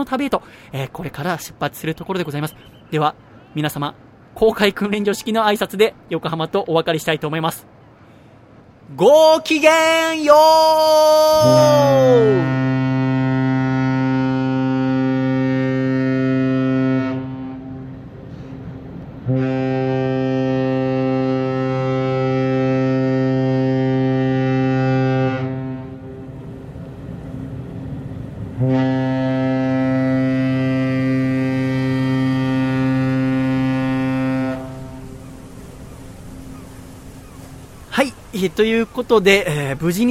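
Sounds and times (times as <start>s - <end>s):
speech: 0.0s - 7.7s, 8.9s - 12.6s, 38.6s - 40.0s
ship's horn as the ship leaves Yokohama port: 9.5s - 38.3s.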